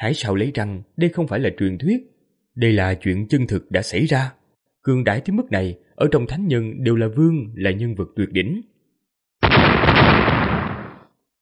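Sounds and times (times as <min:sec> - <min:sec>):
speech: 0:00.0 - 0:08.7
explosion sound effect: 0:09.4 - 0:11.1.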